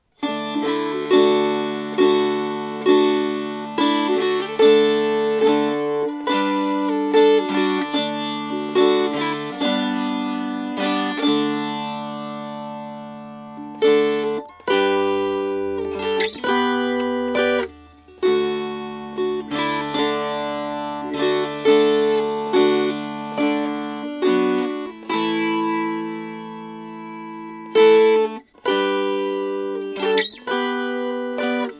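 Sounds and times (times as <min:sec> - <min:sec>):
strummed strings: 0:00.0 - 0:31.7.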